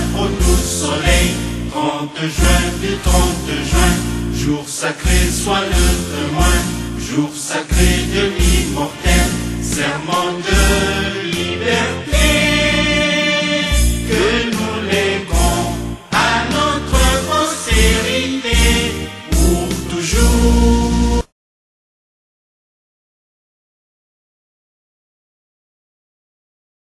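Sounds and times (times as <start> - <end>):
chanting: 0.0 - 20.9.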